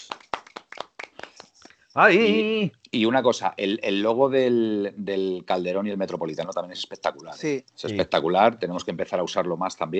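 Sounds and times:
clapping: 0.0s - 1.5s
speech: 2.0s - 9.9s.

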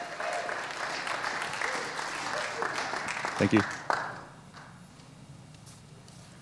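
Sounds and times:
audience applause: 0.0s - 4.8s
speech: 3.4s - 3.8s.

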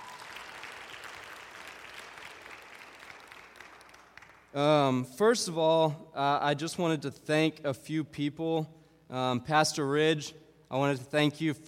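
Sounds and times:
audience applause: 0.0s - 4.5s
speech: 4.5s - 11.6s.

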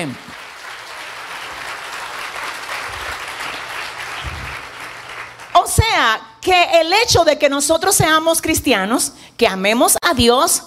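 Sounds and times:
speech: 0.0s - 0.4s, 6.0s - 10.6s
audience applause: 0.0s - 5.6s.

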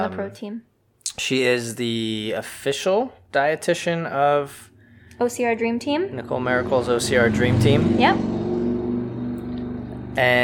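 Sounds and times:
speech: 0.0s - 8.4s, 10.2s - 10.4s
motorcycle passing by: 4.5s - 10.4s.

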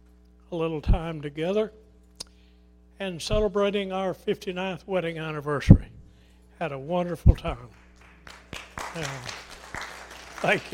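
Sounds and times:
speech: 0.5s - 1.8s, 3.0s - 5.9s, 6.6s - 7.8s, 8.9s - 9.4s, 10.4s - 10.7s
audience applauding: 7.8s - 10.7s.

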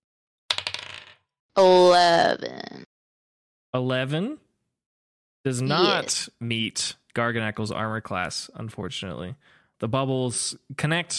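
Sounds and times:
dice being rolled: 0.5s - 1.2s
speech: 1.6s - 2.8s, 3.7s - 4.4s, 5.4s - 11.1s.

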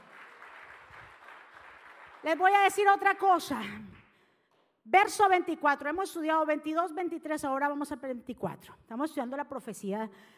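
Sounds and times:
audience applauding: 0.0s - 2.6s
speech: 2.2s - 3.9s, 4.9s - 10.3s.

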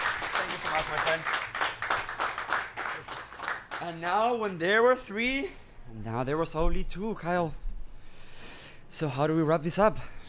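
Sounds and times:
crowd clapping: 0.0s - 4.8s
speech: 0.8s - 1.5s, 3.8s - 7.6s, 8.9s - 10.2s.

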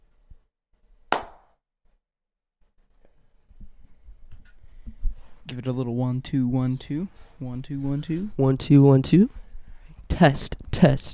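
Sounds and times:
hand clap in front of microphone: 1.1s - 1.6s
speech: 5.5s - 9.4s, 10.2s - 11.1s.

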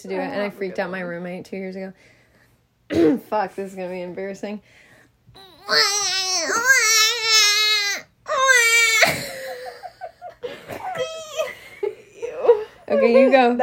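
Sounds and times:
speech: 0.0s - 2.2s, 2.9s - 6.7s, 12.9s - 13.6s
human voice imitating a baby crying: 5.4s - 9.3s, 10.8s - 11.5s.

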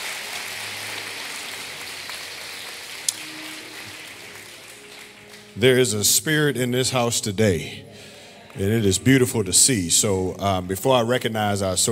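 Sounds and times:
audience applause: 0.0s - 5.8s
speech: 5.6s - 11.9s.

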